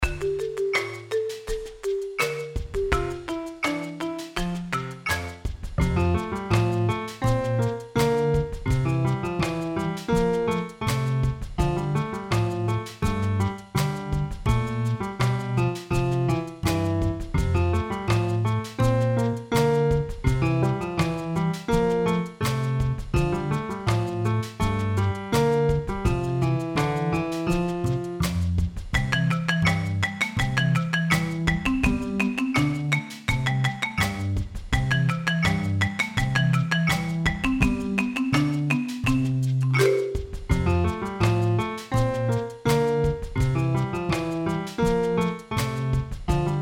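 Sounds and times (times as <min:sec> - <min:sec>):
instrumental song without vocals: 0:00.0 - 0:46.5.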